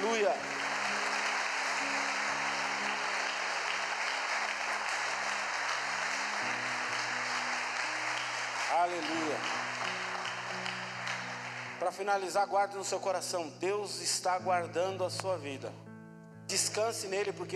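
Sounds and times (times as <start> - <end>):
audience applauding: 0.0 - 12.3
speech: 8.8 - 10.0, 11.8 - 15.8, 16.5 - 17.5.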